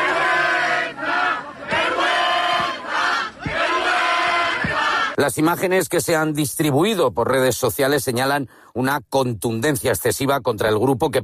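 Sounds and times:
large crowd shouting and yelling during police charge: 0.0 - 5.2
sharp thuds or impacts: 1.7 - 2.8, 3.4 - 5.0
speech: 5.2 - 11.2.

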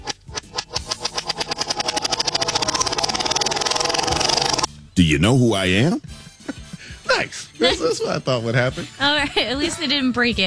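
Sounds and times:
prize wheel spun backwards clicking: 0.0 - 4.7
speech: 5.0 - 6.1, 7.2 - 10.4
laughter: 5.5 - 10.1.

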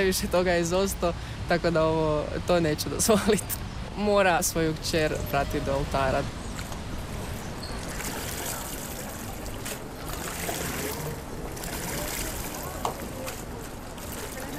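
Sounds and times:
speech: 0.0 - 6.4
sea water lapping at the shore: 5.0 - 14.5.

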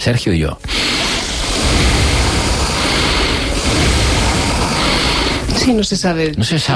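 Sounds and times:
speech: 0.0 - 0.8, 5.6 - 6.7
three people breathing together: 0.6 - 6.0.

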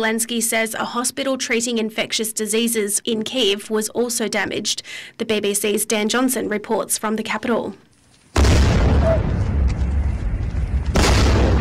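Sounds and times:
speech: 0.0 - 7.9
explosion during a Russian attack on Kyiv at night: 8.4 - 11.5.

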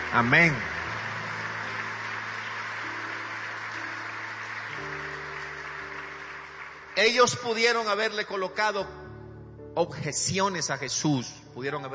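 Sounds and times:
audience applause: 0.0 - 7.5
speech: 0.1 - 0.7, 7.0 - 9.0, 9.8 - 11.9.

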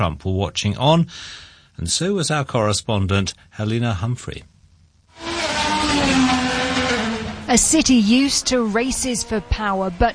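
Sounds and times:
speech: 0.0 - 4.5, 7.5 - 10.1
race cars roaring through the streets of Washington DC: 5.1 - 10.1.

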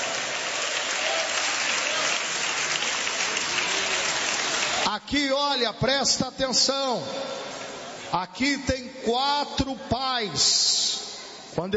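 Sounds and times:
crowd applause: 0.0 - 4.9
speech: 5.0 - 7.5, 8.1 - 10.8, 11.6 - 11.7.

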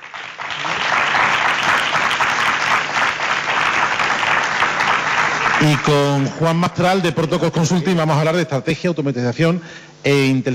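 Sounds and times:
audience applause: 0.0 - 6.5
speech: 5.6 - 10.5.

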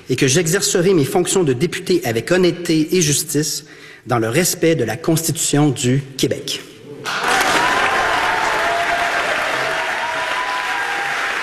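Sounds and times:
speech: 0.1 - 7.4
crowd applauding after swearing-in: 7.0 - 11.4.

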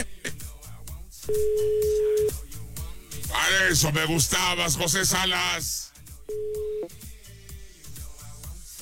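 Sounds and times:
speech: 1.3 - 1.8, 3.6 - 6.7
phone ringback tone on an unanswered call to a Movistar line: 1.3 - 2.3, 6.3 - 6.9.

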